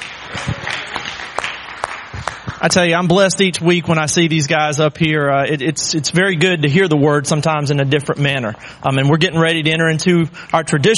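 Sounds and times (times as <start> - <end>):
audience clapping: 0.0 - 3.2
speech: 2.6 - 10.9.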